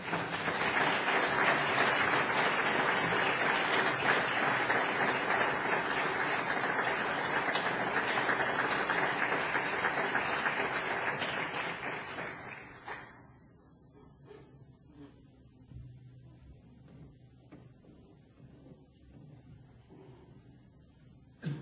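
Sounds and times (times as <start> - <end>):
church congregation applauding to welcome a couple: 0.0 - 13.2.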